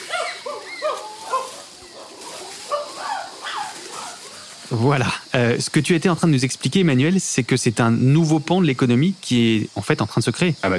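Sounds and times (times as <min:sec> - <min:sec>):
noisy family of monkeys passing by: 0:00.0 - 0:05.7
speech: 0:04.7 - 0:10.7.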